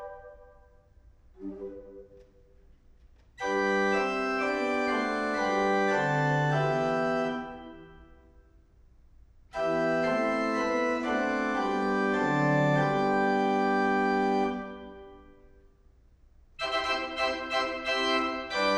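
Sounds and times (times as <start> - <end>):
organ playing: 3.4 - 8.0, 9.5 - 15.2, 16.6 - 18.7.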